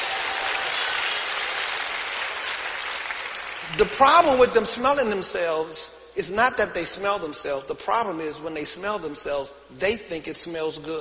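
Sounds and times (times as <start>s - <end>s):
crowd clapping: 0.0s - 4.0s
speech: 3.7s - 10.9s.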